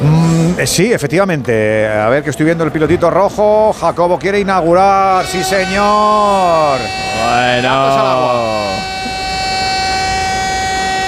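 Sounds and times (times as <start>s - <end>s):
speech: 0.0s - 8.9s
alarm siren sound effect: 5.0s - 11.0s.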